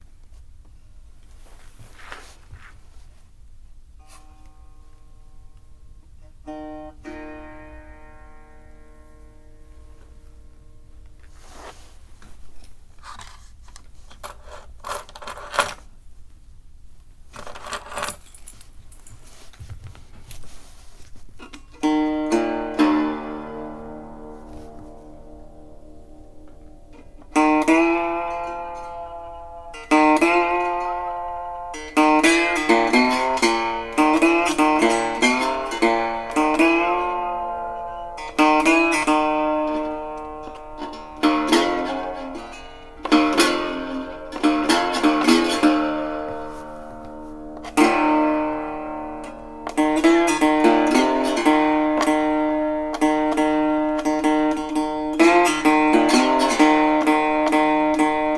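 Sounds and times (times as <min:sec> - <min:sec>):
guitar: 0:03.9 - 0:12.8, 0:21.4 - 0:58.3.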